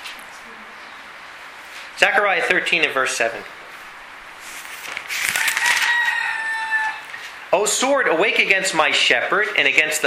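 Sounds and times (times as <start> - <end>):
speech: 2.0 - 3.6, 7.5 - 10.0
rooster crowing in a backyard: 5.2 - 7.4.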